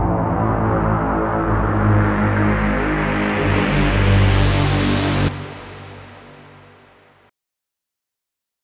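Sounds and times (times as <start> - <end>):
drone: 0.0 - 7.1.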